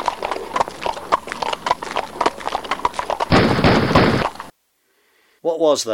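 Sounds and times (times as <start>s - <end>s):
horse hooves pulling a buggy: 0.0s - 4.5s
rapid gunfire: 3.3s - 4.5s
speech: 5.5s - 5.9s.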